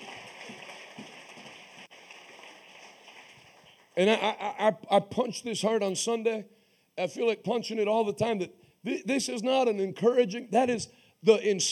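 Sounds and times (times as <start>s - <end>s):
audience clapping hands: 0.0s - 4.4s
speech: 4.0s - 11.7s.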